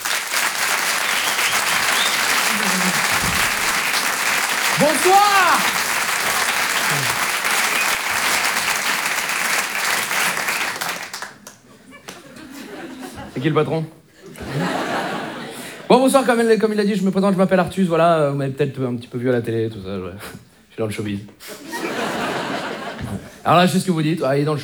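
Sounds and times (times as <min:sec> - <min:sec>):
audience applause: 0:00.0 - 0:13.1
laughter: 0:00.6 - 0:13.6, 0:14.2 - 0:15.9, 0:21.5 - 0:23.4
speech: 0:04.8 - 0:05.8, 0:13.4 - 0:14.0, 0:16.0 - 0:21.6, 0:23.4 - 0:24.6.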